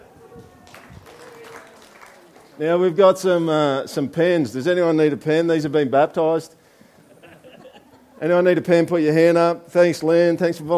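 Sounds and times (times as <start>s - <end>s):
crowd applause: 0.0s - 3.0s
speech: 2.6s - 6.6s, 8.2s - 10.7s
laughter: 7.0s - 8.6s.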